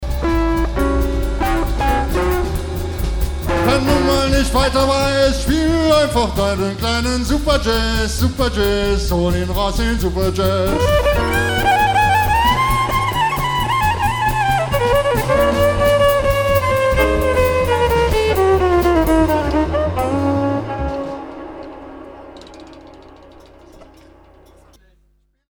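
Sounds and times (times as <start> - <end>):
jazz music: 0.0 - 24.8.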